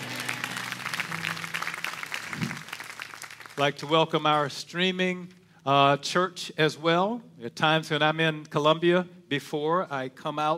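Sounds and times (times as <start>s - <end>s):
audience clapping hands: 0.0s - 4.5s
speech: 3.6s - 10.5s.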